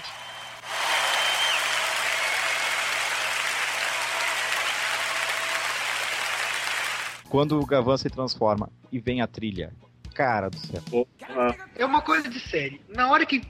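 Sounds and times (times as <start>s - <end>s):
applause: 0.0s - 7.2s
speech: 7.3s - 13.4s.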